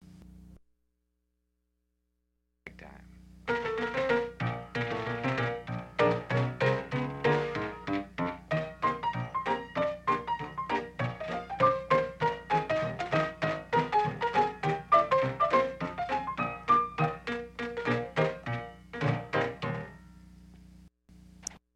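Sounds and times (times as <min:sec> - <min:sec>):
rinky tink piano: 0:03.5 - 0:20.2.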